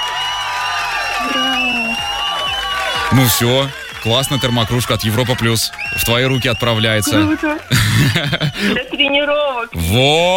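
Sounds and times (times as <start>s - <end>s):
applause: 0.0s - 8.9s
crowd cheering with whoops and shouts: 0.0s - 9.0s
speech: 3.1s - 10.3s
laughter: 6.8s - 9.3s.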